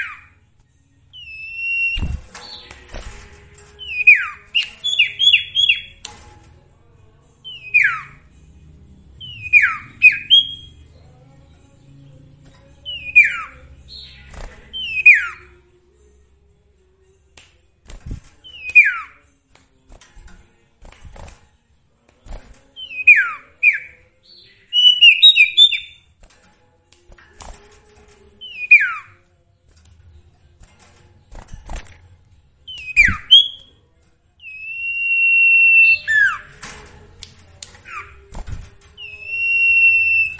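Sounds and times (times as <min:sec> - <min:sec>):
sooty-headed bulbul song: 0:01.1 - 0:02.7, 0:03.8 - 0:06.0, 0:07.4 - 0:08.2, 0:09.2 - 0:10.8, 0:12.9 - 0:15.5, 0:18.4 - 0:19.2, 0:22.8 - 0:26.1, 0:28.4 - 0:29.2, 0:32.7 - 0:33.8, 0:34.4 - 0:36.5, 0:39.0 - 0:40.3.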